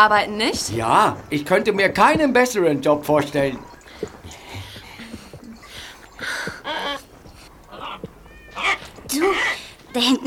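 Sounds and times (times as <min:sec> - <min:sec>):
speech: 0:00.0 - 0:04.2, 0:09.1 - 0:10.2
birds screeching in zoo aviary: 0:03.5 - 0:10.2.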